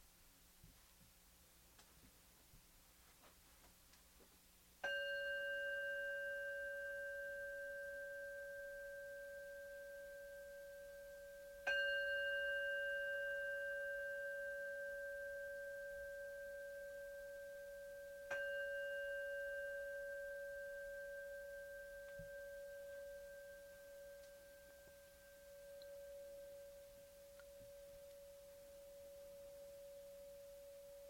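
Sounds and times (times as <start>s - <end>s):
meditation bell ringing: 4.8s - 31.0s.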